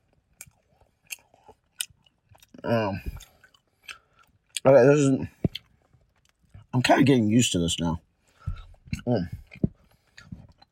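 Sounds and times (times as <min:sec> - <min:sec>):
biting and chewing an expired Milky Way candy bar: 0:00.0 - 0:04.7, 0:05.3 - 0:06.8, 0:08.3 - 0:10.7
speech: 0:02.6 - 0:03.2, 0:04.6 - 0:05.4, 0:06.8 - 0:08.0, 0:09.1 - 0:09.4.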